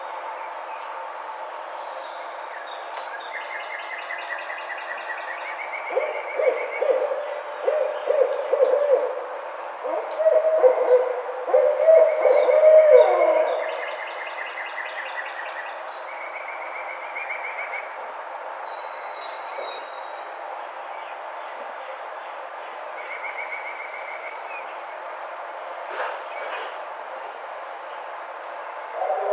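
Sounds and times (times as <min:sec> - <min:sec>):
Barred Owl calling: 0:05.9 - 0:14.0, 0:28.9 - 0:29.3.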